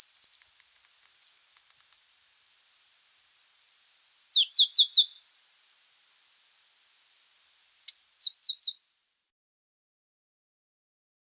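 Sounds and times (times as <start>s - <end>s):
Red-hooded tanager in Ecuador: 0.0s - 8.8s.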